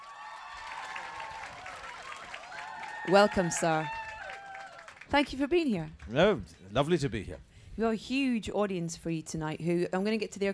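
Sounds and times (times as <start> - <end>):
audience applause: 0.0 - 5.1
speech: 3.1 - 4.0, 5.1 - 10.5.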